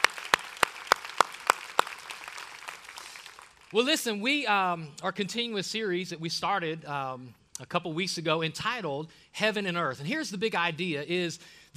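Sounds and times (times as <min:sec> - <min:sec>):
audience applauding: 0:00.0 - 0:03.8
speech: 0:03.7 - 0:11.7.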